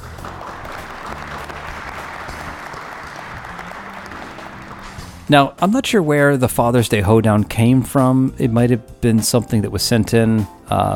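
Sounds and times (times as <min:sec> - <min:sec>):
applause sound effect: 0:00.0 - 0:05.3
speech: 0:05.3 - 0:10.9.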